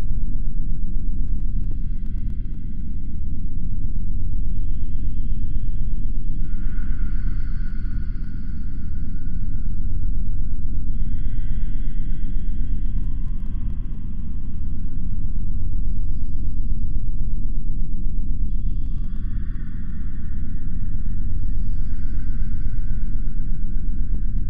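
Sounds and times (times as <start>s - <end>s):
underground ambience: 0.0s - 24.4s.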